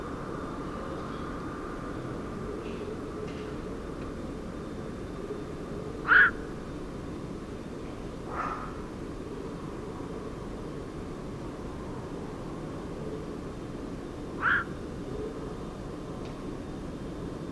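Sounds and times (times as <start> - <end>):
steady low background noise: 0.0 - 17.5
black-crowned night heron croaking: 6.0 - 6.4, 8.3 - 8.9, 14.4 - 14.8.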